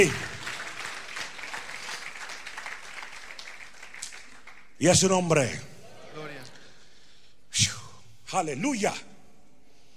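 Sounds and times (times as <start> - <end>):
speech: 0.0 - 0.3, 4.8 - 5.7, 8.3 - 9.1
audience applause: 0.0 - 4.8.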